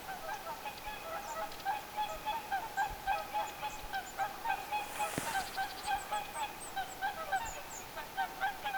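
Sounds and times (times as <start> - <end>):
geese honking: 0.1 - 8.7
long-tailed tit calls: 4.0 - 7.9.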